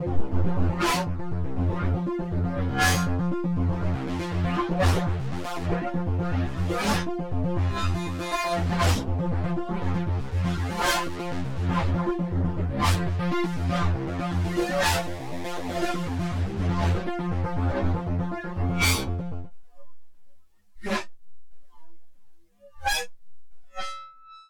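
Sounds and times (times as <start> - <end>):
synth through Erica Synths Black Hole DSP2 Havok chorus with feedback: 0.0 - 19.7.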